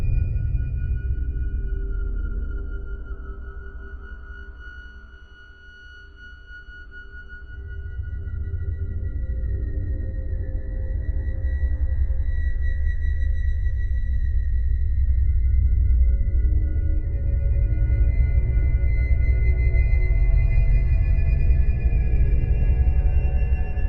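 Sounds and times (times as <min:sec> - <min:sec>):
ambience: 0:00.0 - 0:23.8.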